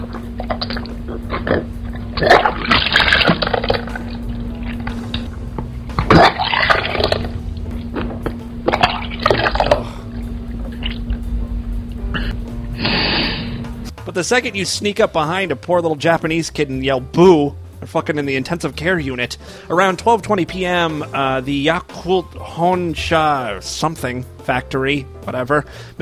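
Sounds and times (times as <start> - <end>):
bathtub filling with running water: 0.0 - 5.4, 6.0 - 11.2
steady low hum: 0.0 - 14.1
speech: 14.3 - 26.0.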